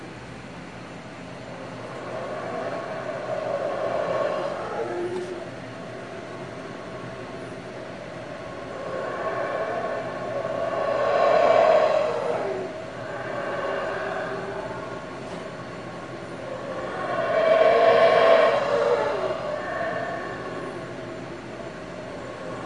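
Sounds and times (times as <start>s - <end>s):
howler monkeys roaring: 1.4s - 22.6s.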